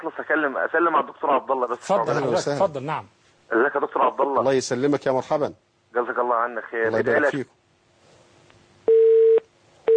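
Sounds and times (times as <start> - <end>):
speech: 0.0 - 7.6
telephone tone beeps after a call is cut off: 8.9 - 9.9.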